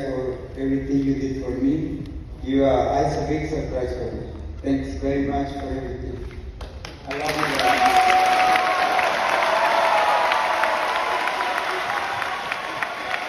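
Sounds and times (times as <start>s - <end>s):
speech: 0.6s - 6.3s
student body cheering and applauding in an echoing gym: 7.0s - 13.2s.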